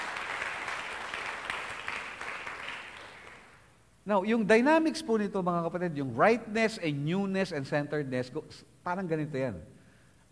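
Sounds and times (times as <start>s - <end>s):
church congregation clapping: 0.0s - 3.8s
speech: 4.0s - 9.8s.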